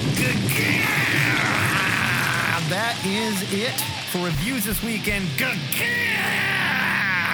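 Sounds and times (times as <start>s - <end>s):
zombie dog sound effect snarling groan: 0.2s - 2.7s, 5.9s - 7.3s
speech: 3.0s - 6.5s.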